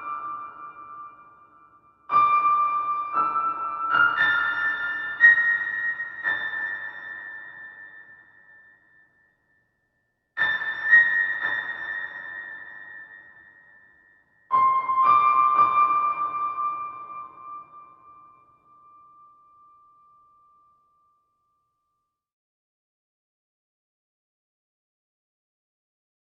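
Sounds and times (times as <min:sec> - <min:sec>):
piano: 0:00.0 - 0:09.7, 0:10.3 - 0:21.4.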